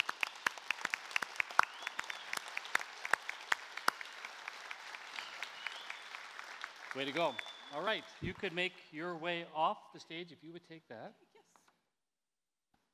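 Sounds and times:
standing audience applauding: 0.0 - 8.7
speech: 7.0 - 11.3.

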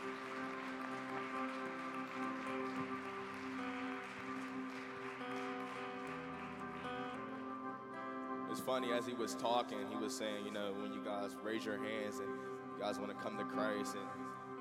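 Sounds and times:
audience applause: 0.0 - 7.5
sustained keyboard chords: 0.0 - 14.5
speech: 8.6 - 14.4.

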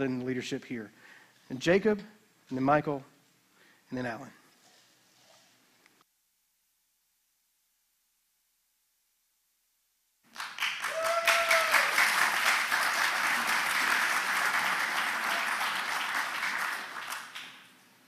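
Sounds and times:
speech: 0.0 - 3.1, 3.9 - 4.4
people cheering: 10.4 - 17.6.

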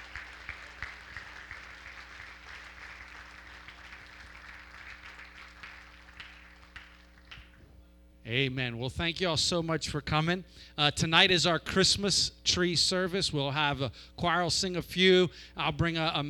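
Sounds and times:
round of applause: 0.0 - 7.6
speech: 8.3 - 16.2.

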